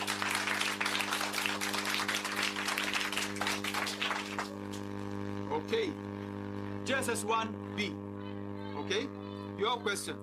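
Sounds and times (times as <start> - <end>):
group applauding: 0.0 - 4.9
low electrical hum: 0.0 - 10.2
speech: 6.9 - 8.0, 8.9 - 10.2.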